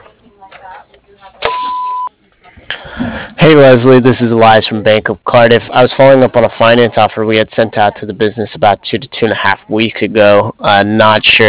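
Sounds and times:
voicemail beep on the line of a Bobcat and backhoe service: 0:01.4 - 0:02.1
speech: 0:03.5 - 0:11.4.

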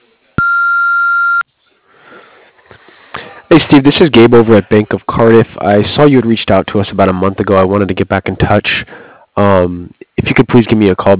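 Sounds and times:
answering machine beep: 0:00.4 - 0:01.4
speech: 0:03.7 - 0:11.1.

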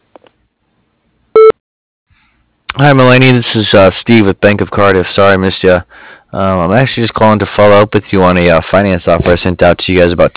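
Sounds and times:
short electronic beep: 0:01.4 - 0:01.6
speech: 0:02.8 - 0:10.3.

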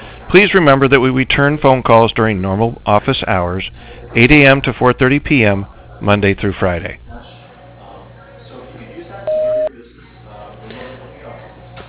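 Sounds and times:
low hum: 0:00.0 - 0:11.8
speech: 0:00.3 - 0:07.0
faint speech-like murmur: 0:07.0 - 0:11.8
answering machine beep tone: 0:09.3 - 0:09.7.

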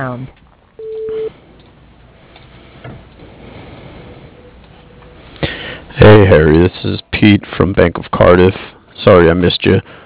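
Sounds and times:
speech: 0:00.0 - 0:00.4, 0:06.0 - 0:10.0
voicemail recording tone beep: 0:00.8 - 0:01.3.

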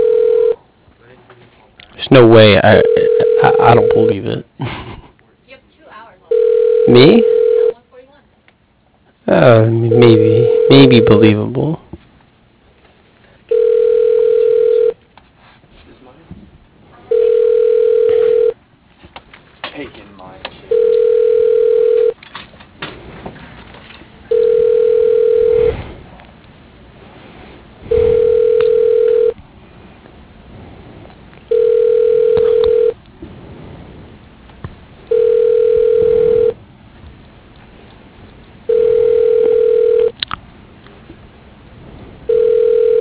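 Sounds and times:
telephone call ringing tone beeps: 0:00.0 - 0:00.6, 0:02.7 - 0:04.2, 0:06.3 - 0:07.8, 0:09.9 - 0:11.3, 0:13.5 - 0:15.0, 0:17.1 - 0:18.6, 0:20.7 - 0:22.2, 0:24.3 - 0:25.7, 0:27.9 - 0:29.4, 0:31.5 - 0:33.0, 0:35.1 - 0:36.6, 0:38.7 - 0:40.1, 0:42.3 - 0:43.0
speech: 0:02.1 - 0:04.8, 0:06.9 - 0:07.4, 0:09.3 - 0:11.8.

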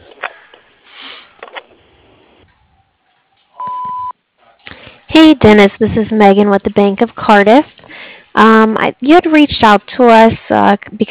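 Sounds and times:
person sniffing: 0:00.8 - 0:01.4
electrical contractor's answering machine beep: 0:03.6 - 0:04.1
speech: 0:05.2 - 0:07.8, 0:08.4 - 0:11.0.

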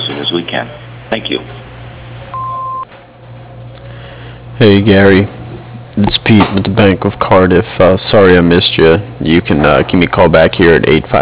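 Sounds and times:
speech: 0:00.3 - 0:01.6, 0:04.6 - 0:05.4, 0:06.0 - 0:11.1
electronic answering machine beep: 0:02.3 - 0:02.9
low telephone-line hum: 0:02.3 - 0:03.0.

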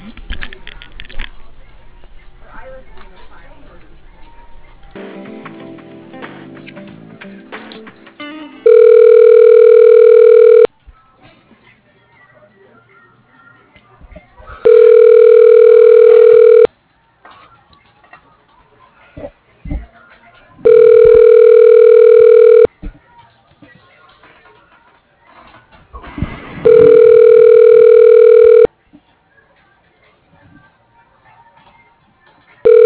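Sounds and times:
telephone line tones while call is transferred: 0:08.6 - 0:10.7, 0:14.6 - 0:16.7, 0:20.6 - 0:22.7, 0:26.6 - 0:28.7, 0:32.6 - 0:32.8.

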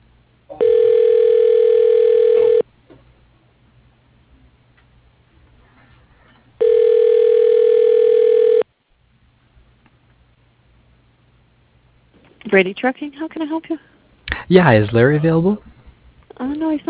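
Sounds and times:
telephone ringing tone: 0:00.5 - 0:02.6, 0:06.6 - 0:08.6
speech: 0:12.6 - 0:15.7, 0:16.4 - 0:16.8.

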